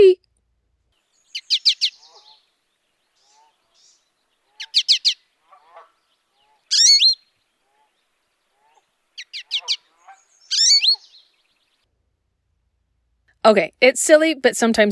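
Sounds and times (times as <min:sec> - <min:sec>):
American goldfinch chip calls: 0:01.2 - 0:02.4, 0:03.2 - 0:05.2, 0:06.4 - 0:07.9, 0:09.2 - 0:11.7
speech: 0:13.5 - 0:14.9.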